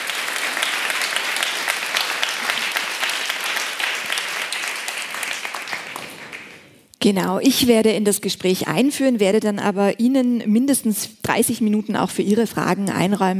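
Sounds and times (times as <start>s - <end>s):
audience applause for speakers: 0.0s - 6.8s
speech: 7.0s - 13.3s.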